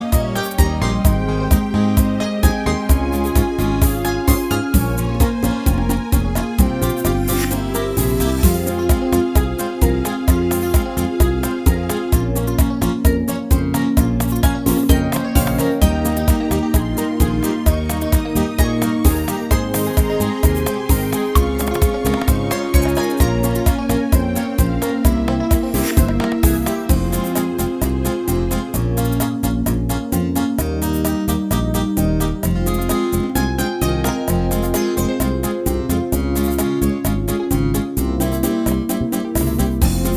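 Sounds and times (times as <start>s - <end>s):
bachata music: 0.0s - 40.1s.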